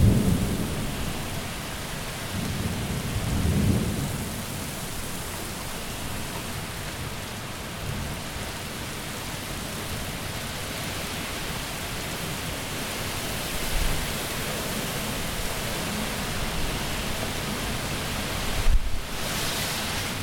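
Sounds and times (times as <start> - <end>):
thunder: 0.0 - 1.4, 2.3 - 4.5
summer storm: 0.0 - 20.2.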